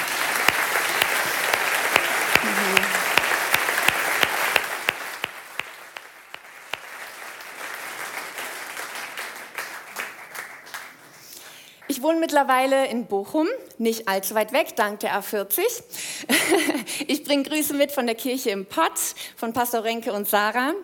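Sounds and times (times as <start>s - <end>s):
audience applause: 0.0s - 11.0s
speech: 12.0s - 20.8s.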